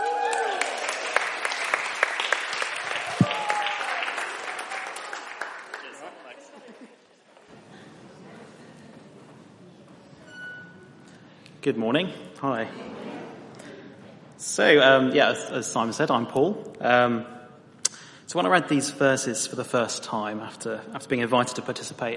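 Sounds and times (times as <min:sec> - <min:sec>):
audience applause welcoming a speaker at a TED-style talk: 0:00.0 - 0:06.9
quiet room noise: 0:00.0 - 0:22.1
laughter: 0:05.7 - 0:09.0
speech: 0:11.6 - 0:13.1, 0:14.5 - 0:17.4, 0:18.3 - 0:22.1.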